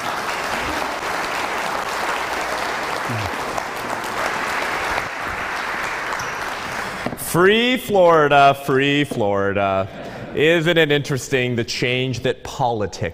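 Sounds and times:
audience applause: 0:00.0 - 0:07.2
speech: 0:07.3 - 0:13.1.

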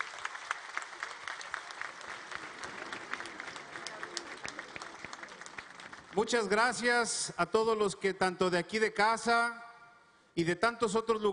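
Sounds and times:
audience applause: 0:00.0 - 0:06.6
speech: 0:06.2 - 0:09.6, 0:10.4 - 0:11.3.

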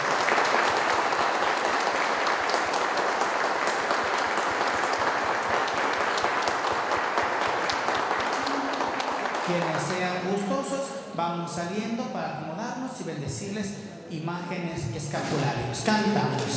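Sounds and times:
applause: 0:00.0 - 0:10.6, 0:16.2 - 0:16.5
speech: 0:10.7 - 0:16.5.

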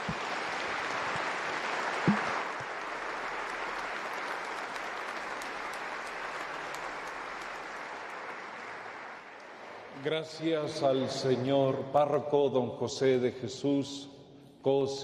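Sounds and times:
applause: 0:00.0 - 0:10.1
speech: 0:10.0 - 0:15.0.

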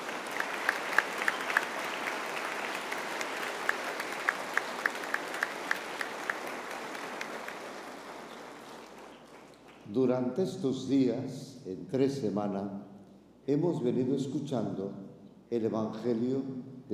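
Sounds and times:
audience applause: 0:00.0 - 0:09.8
speech: 0:09.9 - 0:12.8, 0:13.5 - 0:16.9.

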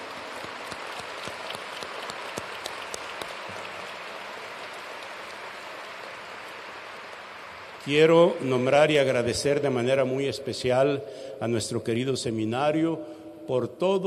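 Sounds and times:
audience applause: 0:00.0 - 0:07.9
speech: 0:07.9 - 0:14.0.

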